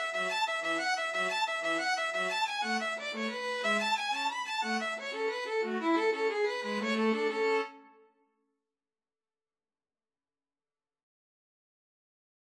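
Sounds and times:
string trio playing Irish jig medley: 0:00.0 - 0:07.7.

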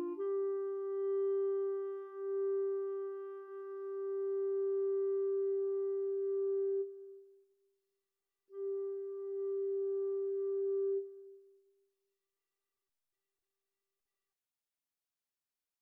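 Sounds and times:
clarinet duet: 0:00.0 - 0:07.0, 0:08.6 - 0:11.3.

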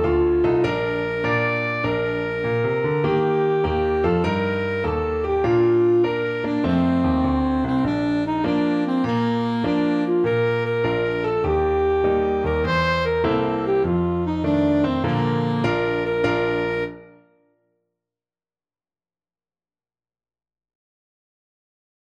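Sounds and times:
alto saxophone: 0:00.0 - 0:17.4.

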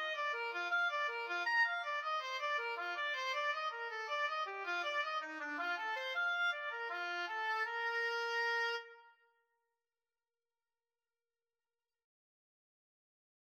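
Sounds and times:
oboe playing a bourree: 0:00.0 - 0:09.0.

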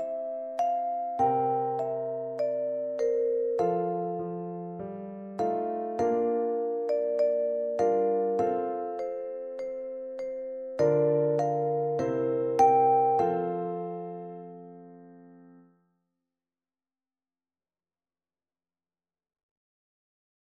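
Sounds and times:
vibraphone: 0:00.0 - 0:14.5.

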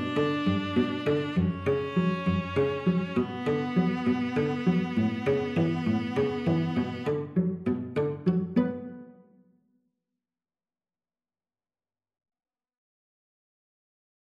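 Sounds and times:
Spanish violin trio playing: 0:00.0 - 0:09.0.

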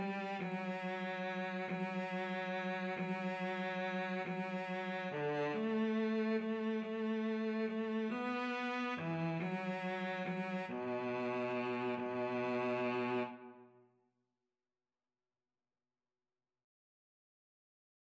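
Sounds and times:
cello: 0:00.0 - 0:13.8
violin: 0:00.0 - 0:13.8.

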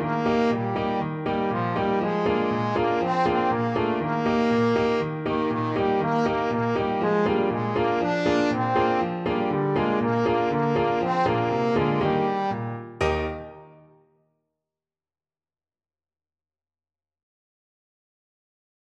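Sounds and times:
trombone: 0:00.0 - 0:13.6.

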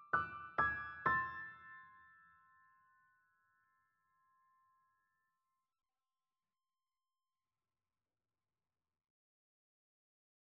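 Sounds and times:
piano duet: 0:00.0 - 0:02.2.

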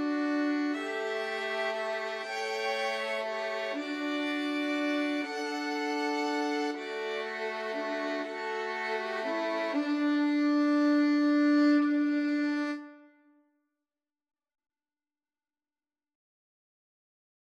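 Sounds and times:
violin trio: 0:00.0 - 0:13.0.

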